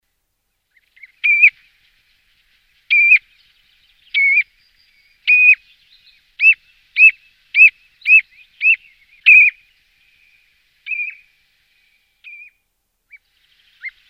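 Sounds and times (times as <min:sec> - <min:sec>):
common ringed plover calls: 0:00.8 - 0:01.8, 0:02.8 - 0:09.6, 0:10.8 - 0:11.3.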